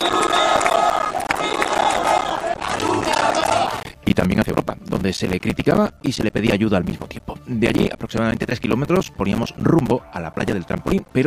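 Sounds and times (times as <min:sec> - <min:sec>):
protest crowd chanting and shouting: 0:00.0 - 0:03.9
speech: 0:05.0 - 0:11.2.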